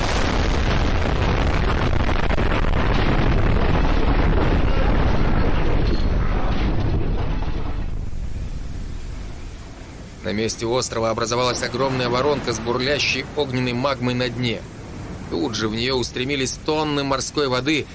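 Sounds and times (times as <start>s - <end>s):
huge explosion: 0.0s - 17.9s
speech: 10.4s - 14.7s, 15.3s - 17.9s.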